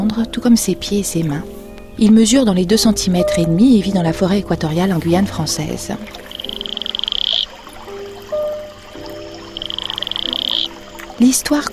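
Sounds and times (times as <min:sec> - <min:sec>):
speech: 0:00.0 - 0:06.2, 0:11.2 - 0:11.7
Atelopus franciscus toad giving a high rapid buzzing trill: 0:06.0 - 0:11.2
soft tonal chirps: 0:06.0 - 0:11.2.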